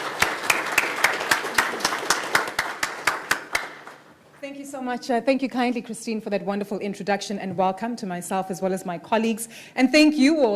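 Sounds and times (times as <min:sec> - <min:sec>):
audience applause welcoming a panel: 0:00.0 - 0:04.0
speech: 0:04.8 - 0:10.5.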